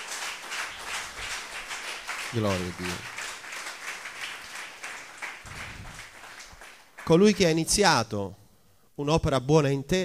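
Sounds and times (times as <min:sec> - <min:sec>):
audience applause: 0:00.0 - 0:07.4
speech: 0:02.3 - 0:03.2, 0:07.1 - 0:08.4, 0:09.0 - 0:10.0.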